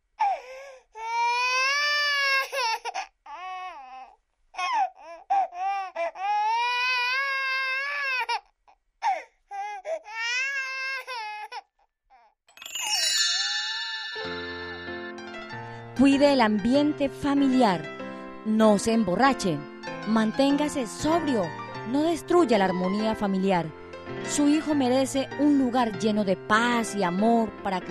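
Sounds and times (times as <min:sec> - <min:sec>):
infant wailing: 0:00.2 - 0:12.4
brief descending tonal sound: 0:12.6 - 0:15.7
speech: 0:16.0 - 0:27.9.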